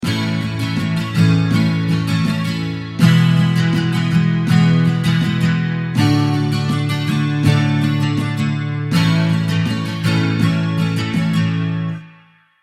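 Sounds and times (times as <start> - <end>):
guitar strumming pattern: 0.0 - 12.6.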